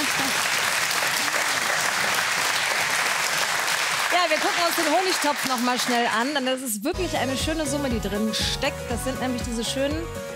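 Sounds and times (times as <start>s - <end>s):
audience applause: 0.0s - 6.5s
speech: 4.2s - 10.3s.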